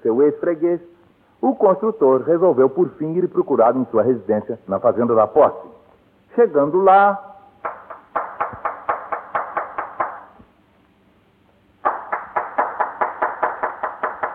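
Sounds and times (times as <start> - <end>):
speech: 0.0 - 5.8, 6.4 - 7.3
insistent hand clapping at a door: 7.6 - 10.5, 11.8 - 14.3.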